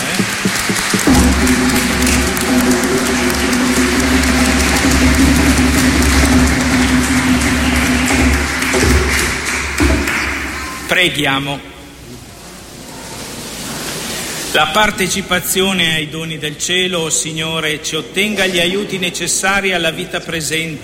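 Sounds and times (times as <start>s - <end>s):
audience applause: 0.0s - 10.9s
speech: 10.9s - 11.7s, 14.6s - 20.8s.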